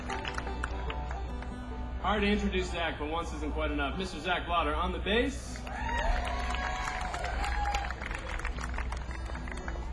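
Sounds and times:
audience applause: 0.0s - 1.2s, 5.6s - 9.9s
speech: 2.0s - 6.3s.

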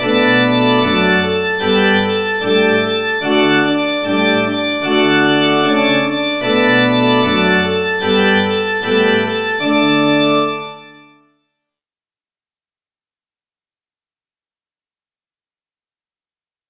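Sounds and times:
organ: 0.0s - 11.2s.

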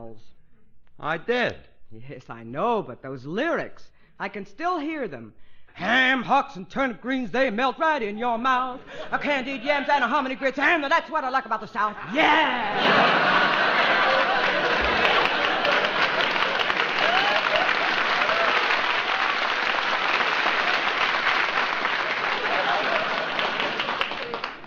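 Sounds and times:
speech: 0.0s - 0.4s, 1.0s - 13.5s
laughter: 8.8s - 10.6s, 11.9s - 18.7s, 22.1s - 24.6s
large audience applause: 12.7s - 24.6s.

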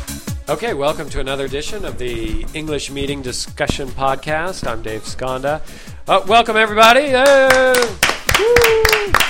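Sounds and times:
speech: 0.5s - 9.2s
crowd applause handclaps: 7.2s - 9.2s
voice whooping in long sliding tones: 7.5s - 9.2s.

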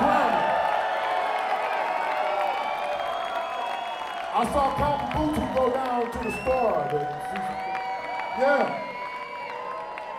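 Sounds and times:
crowd screaming and cheering: 0.0s - 10.1s
speech: 4.4s - 7.7s, 8.4s - 8.8s.

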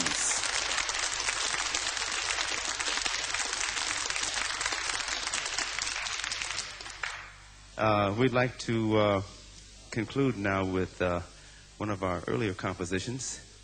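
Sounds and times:
audience applause for drummer: 0.0s - 7.3s
speech: 7.8s - 13.5s.

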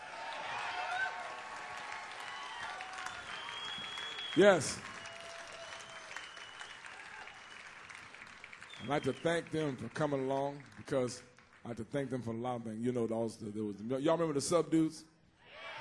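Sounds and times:
audience applause: 0.0s - 11.6s
speech: 4.4s - 4.9s, 8.9s - 15.1s.

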